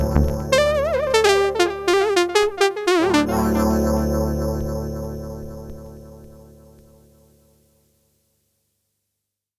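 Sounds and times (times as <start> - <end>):
jazz music: 0.0 - 4.0.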